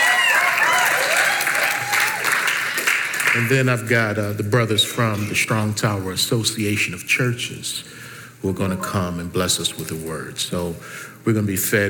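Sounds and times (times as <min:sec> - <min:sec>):
audience applause: 0:00.0 - 0:03.6
speech: 0:03.4 - 0:11.8.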